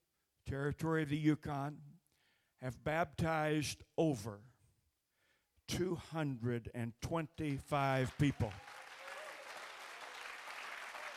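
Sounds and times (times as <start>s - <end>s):
speech: 0.5s - 1.9s, 2.6s - 4.5s, 5.7s - 8.7s
congregation applause at a church district gathering: 7.9s - 11.1s.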